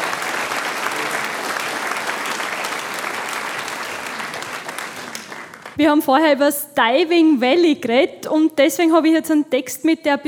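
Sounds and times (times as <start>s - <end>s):
audience applause: 0.0s - 5.8s
speech: 5.8s - 10.2s.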